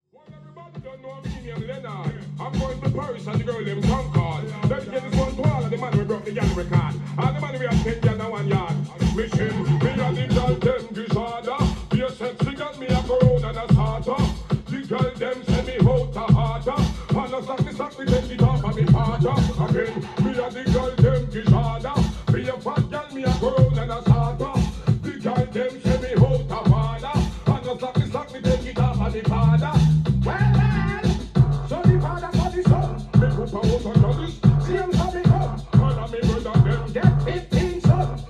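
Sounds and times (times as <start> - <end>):
reggae music: 0.2 - 38.2.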